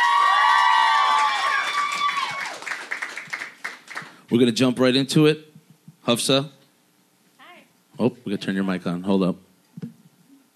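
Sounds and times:
crowd cheering with whoops and shouting: 0:00.0 - 0:03.7
clapping: 0:00.0 - 0:04.2
speech: 0:04.3 - 0:05.5, 0:06.1 - 0:06.6, 0:08.0 - 0:09.9.

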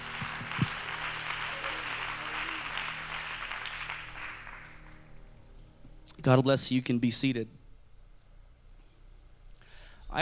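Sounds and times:
audience applause: 0:00.0 - 0:05.0
speech: 0:06.2 - 0:07.6.

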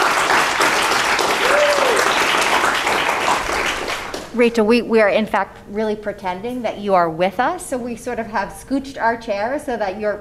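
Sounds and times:
audience applause: 0:00.0 - 0:04.3
speech: 0:04.4 - 0:10.1.

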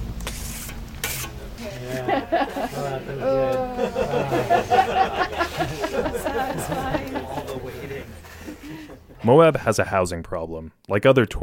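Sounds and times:
trowel spreading plaster paste on a wall: 0:00.2 - 0:02.0
laughter: 0:01.4 - 0:09.6
speech: 0:01.8 - 0:07.2, 0:08.5 - 0:11.4.

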